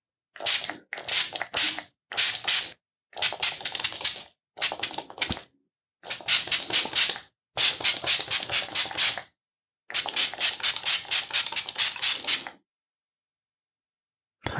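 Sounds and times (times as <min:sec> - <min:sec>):
spray bottle spraying mist onto chest: 0:00.4 - 0:05.4, 0:06.0 - 0:09.3, 0:09.9 - 0:12.6.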